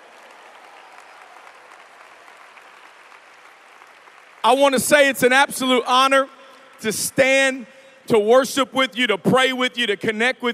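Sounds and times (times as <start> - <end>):
audience clapping: 0.0 - 7.2
speech: 4.4 - 10.5.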